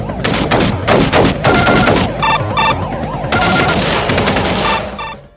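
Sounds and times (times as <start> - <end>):
retro video game gunfire from a 16-bit sound chip: 0.2 - 2.4, 3.3 - 5.2.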